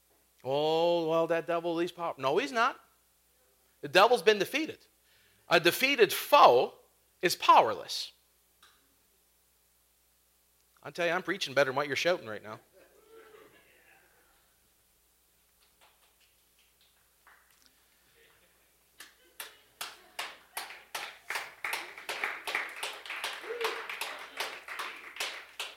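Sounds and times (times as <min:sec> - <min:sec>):
speech: 0:00.4 - 0:02.9, 0:03.8 - 0:04.9, 0:05.5 - 0:08.2, 0:10.8 - 0:12.7
slow clapping from audience: 0:15.5 - 0:18.4, 0:19.0 - 0:25.7.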